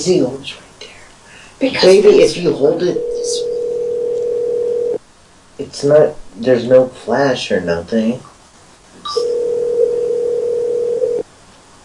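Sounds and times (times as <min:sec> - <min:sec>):
speech: 0:00.0 - 0:00.6, 0:01.6 - 0:03.5, 0:05.6 - 0:08.3, 0:09.1 - 0:09.3
phone ringing: 0:02.8 - 0:05.0, 0:09.1 - 0:11.2.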